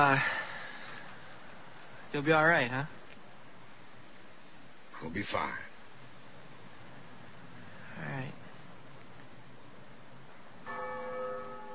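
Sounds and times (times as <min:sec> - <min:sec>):
speech: 0:00.0 - 0:00.4, 0:02.1 - 0:03.0, 0:05.0 - 0:05.7
steady noise: 0:00.0 - 0:11.7
first bell ringing: 0:10.7 - 0:11.7.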